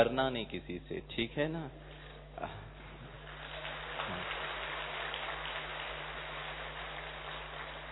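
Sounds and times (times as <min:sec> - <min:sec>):
speech: 0:00.0 - 0:02.7
audience clapping: 0:03.1 - 0:07.9.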